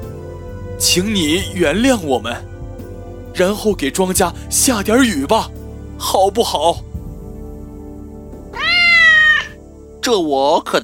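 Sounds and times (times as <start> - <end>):
speech: 0.8 - 2.5, 3.4 - 6.9, 10.0 - 10.8
cat meowing: 8.5 - 9.6.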